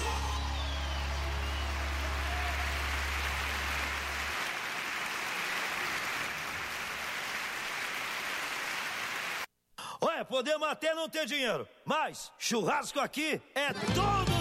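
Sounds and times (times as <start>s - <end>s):
audience applauding: 0.0s - 9.5s
speech: 10.2s - 14.3s.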